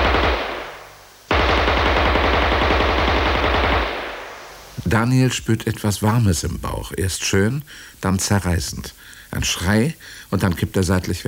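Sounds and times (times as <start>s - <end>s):
submachine gun burst: 0.0s - 4.7s
speech: 4.9s - 11.2s.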